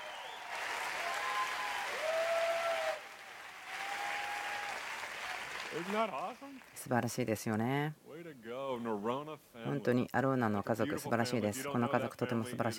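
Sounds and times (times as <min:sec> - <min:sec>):
audience applause: 0:00.0 - 0:06.8
speech: 0:05.7 - 0:12.7.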